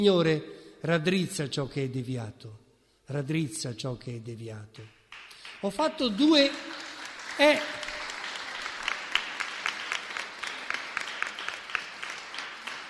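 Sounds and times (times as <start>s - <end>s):
speech: 0.0s - 6.8s, 7.4s - 7.8s
audience applause: 6.3s - 12.8s.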